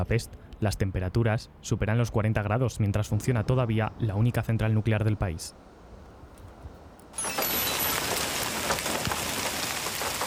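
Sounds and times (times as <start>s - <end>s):
speech: 0.0s - 5.7s
heavy rain during a thunderstorm: 7.1s - 10.2s.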